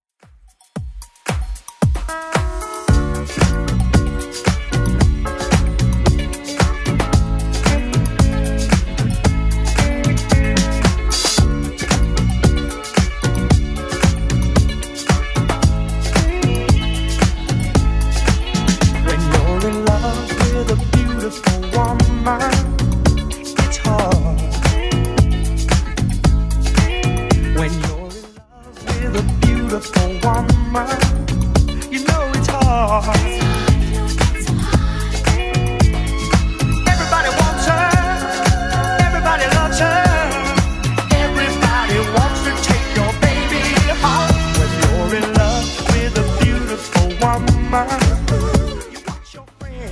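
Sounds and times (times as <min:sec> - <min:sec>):
1970s club music edit: 0:00.2 - 0:49.8.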